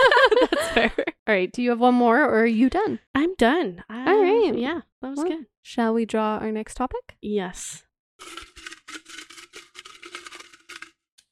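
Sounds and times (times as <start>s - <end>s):
laughter: 0.0s - 1.1s
speech: 0.8s - 8.5s
piece of paper being unfolded: 8.2s - 11.2s.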